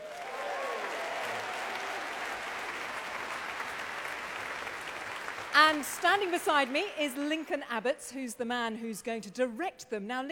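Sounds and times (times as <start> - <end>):
audience applause for a choir: 0.0 - 7.6
speech: 5.6 - 10.3.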